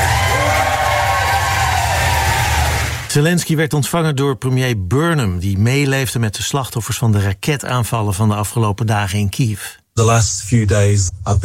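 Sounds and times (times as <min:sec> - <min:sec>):
large crowd cheering: 0:00.0 - 0:03.1
speech: 0:03.1 - 0:11.4.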